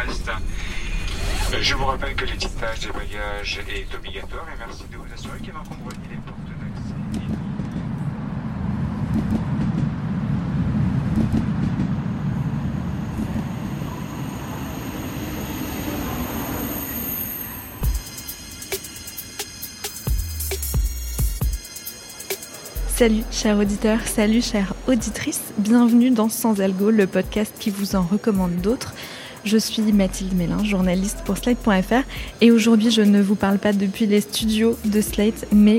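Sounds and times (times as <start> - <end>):
TGV night train running on rails: 0.0 - 20.4, 21.0 - 35.7
speech: 1.5 - 6.4, 23.0 - 35.7.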